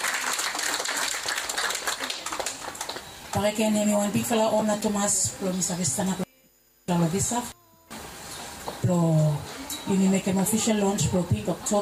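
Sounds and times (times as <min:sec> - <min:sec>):
audience applause: 0:00.0 - 0:03.1
speech: 0:03.3 - 0:06.2, 0:06.9 - 0:07.6, 0:08.9 - 0:11.8.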